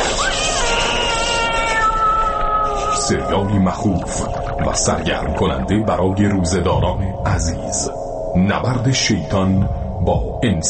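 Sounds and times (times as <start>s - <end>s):
cat meowing: 0.0s - 3.6s
droning background: 2.1s - 10.6s
speech: 3.1s - 10.6s.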